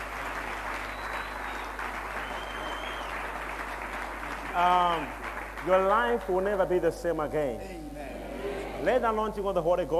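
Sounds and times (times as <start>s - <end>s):
audience clapping hands: 0.0s - 6.8s
speech: 4.6s - 7.9s, 8.8s - 9.9s.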